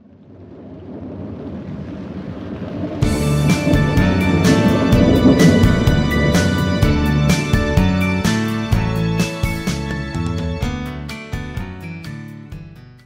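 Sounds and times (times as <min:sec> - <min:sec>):
instrumental two-step music: 0:03.0 - 0:13.0.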